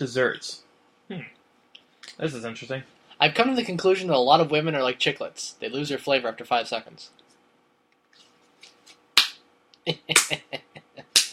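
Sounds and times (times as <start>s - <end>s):
speech: 0.0s - 1.4s, 2.1s - 7.2s, 9.8s - 10.6s
traditional slow clap: 9.2s - 9.4s, 11.1s - 11.3s.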